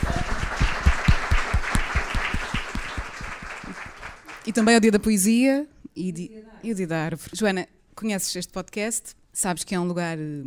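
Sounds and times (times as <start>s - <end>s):
audience clapping: 0.0s - 5.0s
speech: 4.5s - 10.4s.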